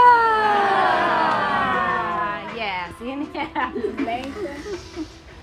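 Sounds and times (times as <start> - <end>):
group of people screaming during a yoga forward fold: 0.0 - 2.5
laughter: 3.2 - 5.1.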